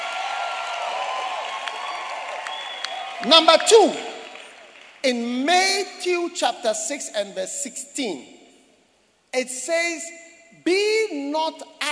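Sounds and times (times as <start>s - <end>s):
audience clapping and cheering: 0.0s - 5.2s
speech: 3.2s - 4.1s, 5.0s - 8.4s, 9.3s - 11.9s.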